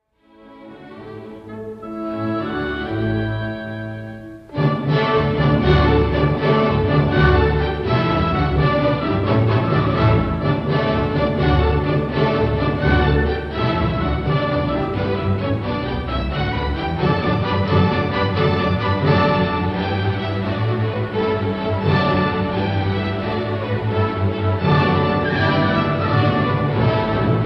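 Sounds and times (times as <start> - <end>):
violin concerto: 0.0 - 27.4.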